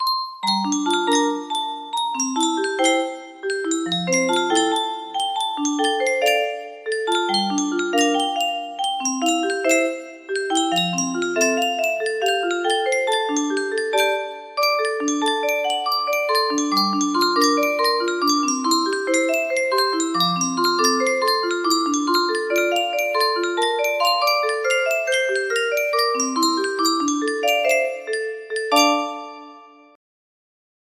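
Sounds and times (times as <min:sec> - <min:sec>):
melody: 0:00.0 - 0:30.0.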